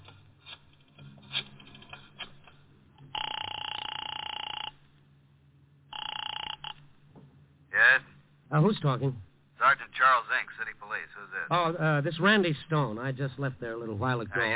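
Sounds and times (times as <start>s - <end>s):
telephone ringing after a number is dialed: 3.0s - 4.8s, 5.9s - 6.8s
speech: 8.5s - 14.5s.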